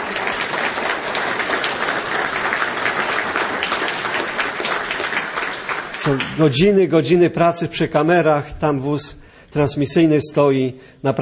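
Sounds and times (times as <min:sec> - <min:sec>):
applause from a large audience: 0:00.0 - 0:06.8
speech: 0:06.0 - 0:11.1.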